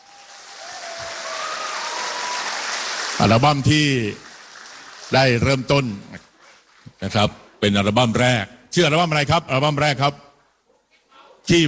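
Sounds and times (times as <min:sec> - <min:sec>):
crowd applauding: 0:00.0 - 0:06.3
speech: 0:03.2 - 0:04.2, 0:05.1 - 0:06.3, 0:07.0 - 0:10.2, 0:11.4 - 0:11.6.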